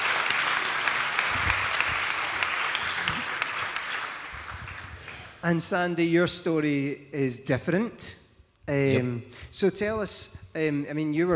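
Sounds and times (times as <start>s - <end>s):
audience cheering and applauding: 0.0s - 5.4s
speech: 5.4s - 11.3s.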